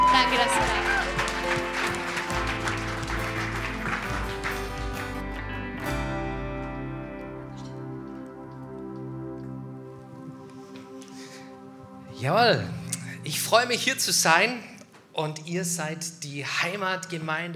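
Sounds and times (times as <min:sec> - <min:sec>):
audience clapping: 0:00.0 - 0:06.8
music: 0:00.0 - 0:17.5
speech: 0:12.2 - 0:17.5.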